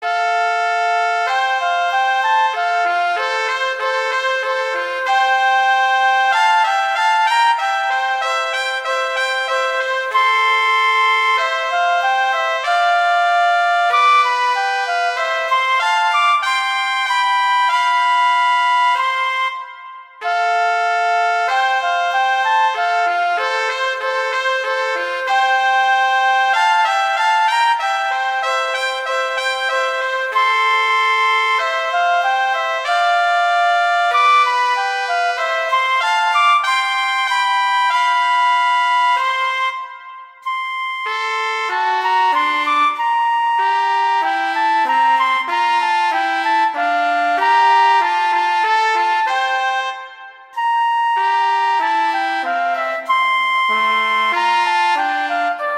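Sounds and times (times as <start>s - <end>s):
horn duet: 0.0s - 55.7s.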